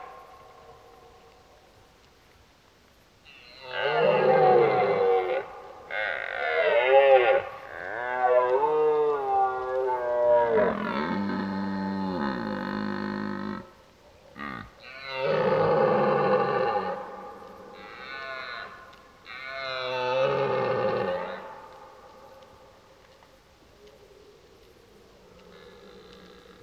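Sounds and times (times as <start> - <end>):
red deer roaring: 3.6 - 13.8, 14.4 - 21.8.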